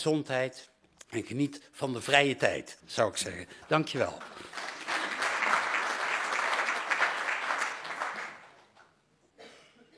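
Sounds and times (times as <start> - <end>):
speech: 0.0 - 4.7
council members applauding: 3.7 - 8.9.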